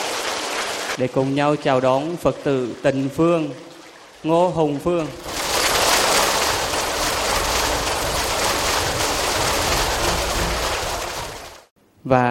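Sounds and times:
speech: 0:01.0 - 0:05.4, 0:12.0 - 0:12.2
audience applause: 0:05.4 - 0:11.7.

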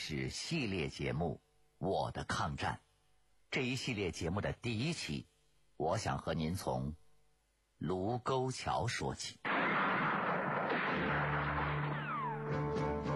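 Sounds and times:
speech: 0:00.1 - 0:02.8, 0:03.5 - 0:07.0, 0:07.8 - 0:09.4
gunfire sound effect for gunfire at the Lugou (Marco Polo) Bridge: 0:09.5 - 0:13.0.

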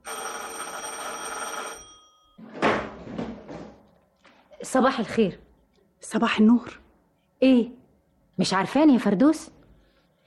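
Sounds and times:
doorbell ringing: 0:00.0 - 0:02.4
speech: 0:04.7 - 0:05.4, 0:06.1 - 0:06.8, 0:07.4 - 0:07.8, 0:08.4 - 0:09.6.

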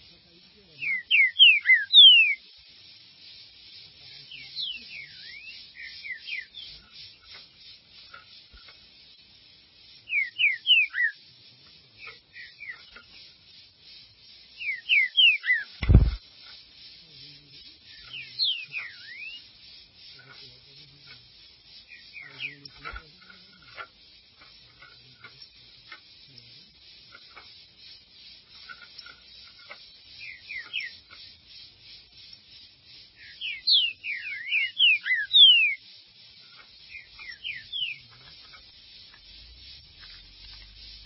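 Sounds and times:
green-winged saltator song: 0:00.0 - 0:41.0
loud thud: 0:15.8 - 0:16.2.

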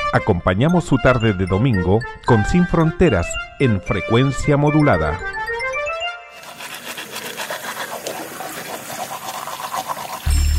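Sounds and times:
speech: 0:00.1 - 0:05.4
tap running while brushing teeth: 0:06.4 - 0:10.4.

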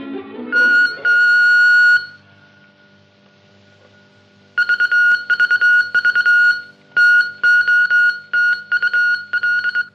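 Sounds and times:
radio transmitter sending message beeps: 0:00.5 - 0:02.1, 0:04.6 - 0:09.9.

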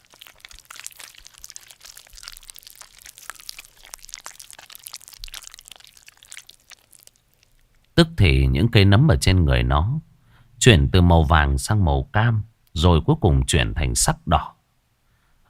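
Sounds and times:
monster chewing and tearing apart a corpse: 0:00.0 - 0:08.0
speech: 0:08.0 - 0:10.0, 0:10.6 - 0:14.5.

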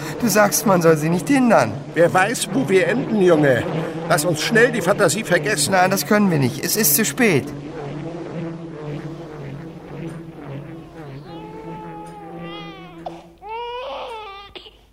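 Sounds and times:
faint constant low hum: 0:00.0 - 0:14.9
speech: 0:00.2 - 0:07.8
child crying in high sobbing wails: 0:11.0 - 0:14.9.

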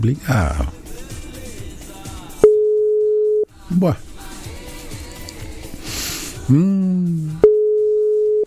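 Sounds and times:
speech: 0:00.0 - 0:00.8, 0:03.7 - 0:04.1, 0:06.5 - 0:07.4
WhatsApp call ringing tone: 0:02.4 - 0:03.5, 0:07.4 - 0:08.4.

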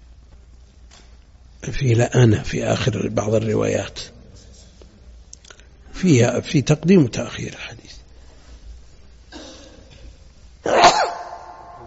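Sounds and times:
speech: 0:01.6 - 0:04.1, 0:06.0 - 0:07.9
sneeze during a religious lecture: 0:10.6 - 0:11.8.

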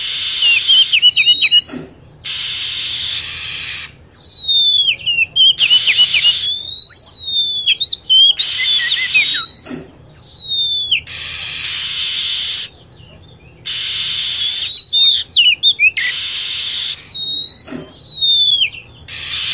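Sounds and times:
lovebird calling: 0:00.0 - 0:19.5.

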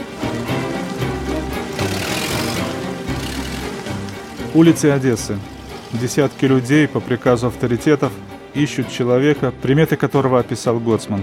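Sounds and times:
car engine rumble as the vehicle moves off: 0:00.0 - 0:08.3
speech: 0:04.5 - 0:11.2.

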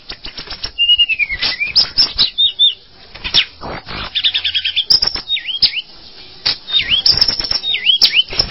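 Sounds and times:
bird delivering varied whistled notes: 0:00.7 - 0:02.8, 0:04.1 - 0:05.9, 0:06.7 - 0:08.4.

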